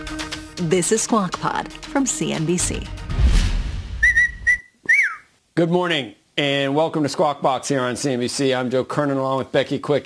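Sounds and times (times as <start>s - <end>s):
speech: 0.6s - 3.0s, 5.6s - 10.0s
person whistling: 4.0s - 5.3s.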